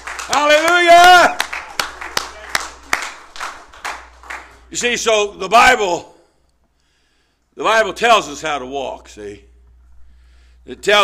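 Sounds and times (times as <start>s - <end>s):
audience hand clapping: 0.0s - 5.4s
speech: 0.3s - 1.4s, 4.7s - 6.1s, 7.6s - 9.5s, 10.6s - 11.0s.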